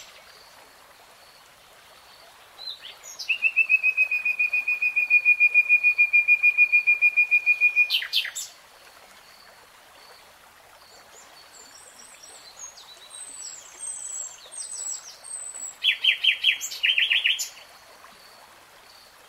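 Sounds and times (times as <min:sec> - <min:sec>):
nightingale song: 0:02.8 - 0:08.5, 0:13.5 - 0:17.6.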